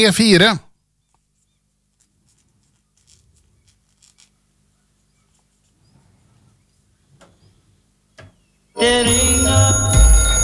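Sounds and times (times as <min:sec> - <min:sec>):
bell ringing: 0:08.8 - 0:10.4.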